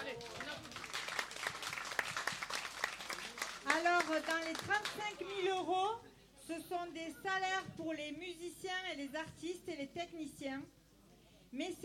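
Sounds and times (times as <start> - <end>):
audience applause: 0.0 - 5.0
speech: 4.0 - 10.8, 11.5 - 11.8.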